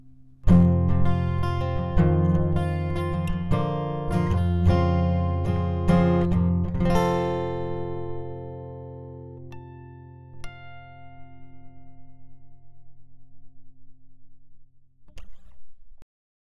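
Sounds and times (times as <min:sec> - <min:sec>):
acoustic guitar: 0:00.0 - 0:13.9.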